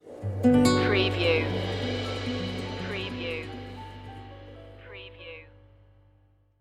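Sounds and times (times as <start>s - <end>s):
latino music stinger: 0.4s - 5.8s.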